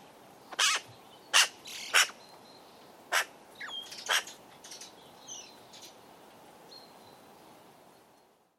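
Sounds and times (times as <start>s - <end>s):
Eurasian magpie harsh chattering: 0.6s - 2.2s, 4.0s - 4.4s.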